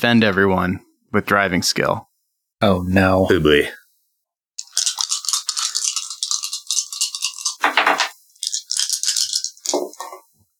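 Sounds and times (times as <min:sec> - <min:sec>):
speech: 0:00.0 - 0:03.8
dice rattling: 0:04.6 - 0:10.1.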